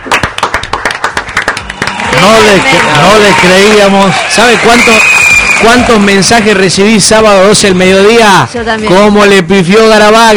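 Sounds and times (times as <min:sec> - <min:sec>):
sharp claps from a small group: 0:00.0 - 0:06.6
speech: 0:02.2 - 0:10.3.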